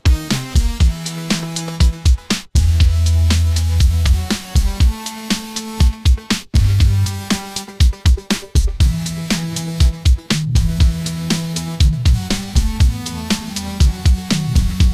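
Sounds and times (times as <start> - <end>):
upbeat pop melody ringtone: 0.0 - 14.9.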